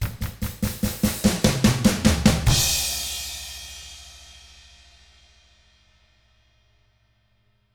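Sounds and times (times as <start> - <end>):
rock drums in 6/8: 0.0 - 4.6.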